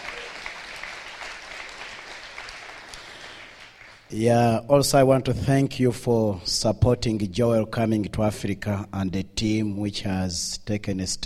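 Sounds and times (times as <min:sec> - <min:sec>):
audience clapping: 0:00.0 - 0:04.1
speech: 0:04.1 - 0:11.2.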